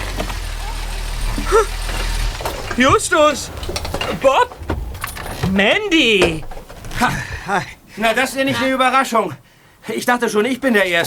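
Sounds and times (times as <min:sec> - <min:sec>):
MG sports car engine rumbling: 0:00.0 - 0:08.5
faint noise: 0:00.0 - 0:11.0
speech: 0:01.4 - 0:02.0, 0:02.8 - 0:04.6, 0:05.5 - 0:11.0.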